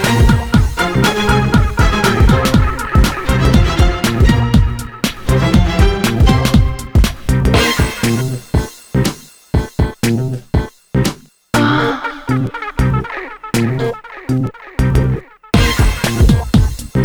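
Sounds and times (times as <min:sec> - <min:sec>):
laughing: 0:00.0 - 0:06.8, 0:11.6 - 0:16.2
funk music: 0:00.0 - 0:17.0.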